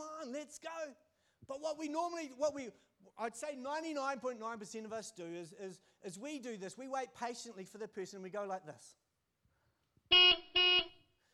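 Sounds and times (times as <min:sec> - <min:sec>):
speech: 0:00.2 - 0:09.0
car horn honking: 0:10.1 - 0:11.1.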